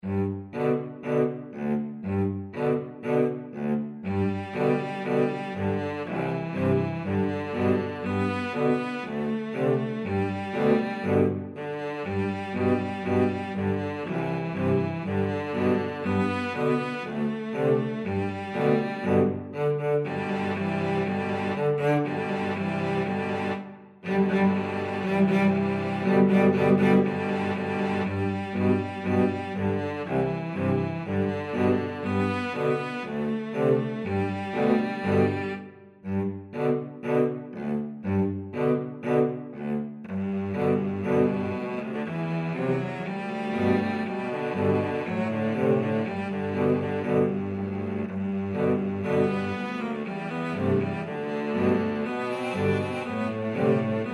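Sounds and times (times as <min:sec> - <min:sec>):
cello quartet: 0:00.0 - 0:54.1.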